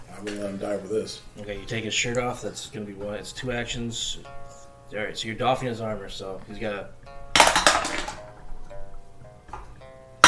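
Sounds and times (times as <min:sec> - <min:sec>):
speech: 0:00.2 - 0:07.1
dice rolling: 0:07.4 - 0:08.3.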